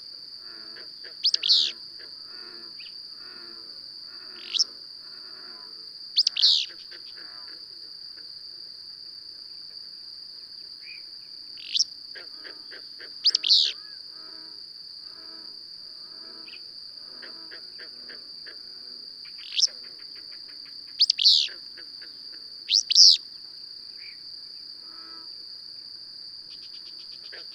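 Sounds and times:
bird chirps: 0:01.2 - 0:01.8, 0:06.2 - 0:06.7, 0:13.3 - 0:13.8, 0:21.0 - 0:21.5, 0:22.7 - 0:23.2.

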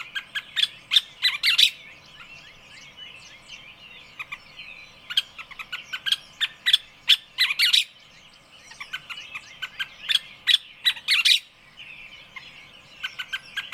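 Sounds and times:
loud harsh bird squawks: 0:00.0 - 0:01.8, 0:05.1 - 0:07.9, 0:08.7 - 0:11.5.

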